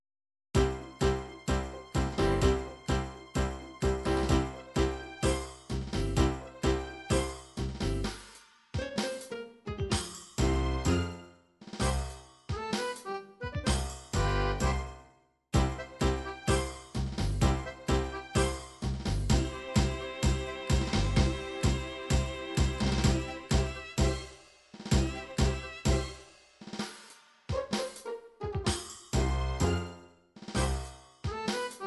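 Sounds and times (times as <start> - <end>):
MIDI tango music: 0.6 - 8.2, 8.8 - 15.0, 15.6 - 26.2, 27.5 - 30.0, 30.6 - 31.8.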